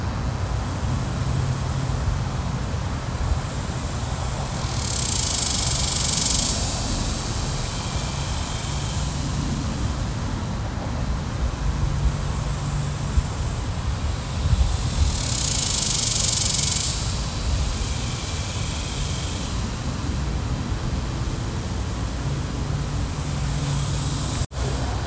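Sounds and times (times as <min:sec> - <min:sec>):
cicadas: 0:00.0 - 0:25.0.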